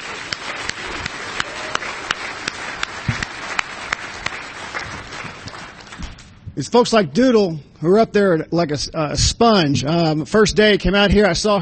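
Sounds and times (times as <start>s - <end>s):
round of applause: 0.0s - 6.3s
speech: 6.6s - 11.6s.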